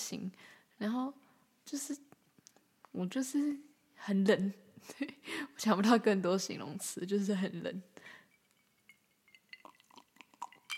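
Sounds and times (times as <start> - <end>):
speech: 0.1 - 2.2, 2.9 - 8.2
ice cubes clinking in a glass: 8.4 - 10.7.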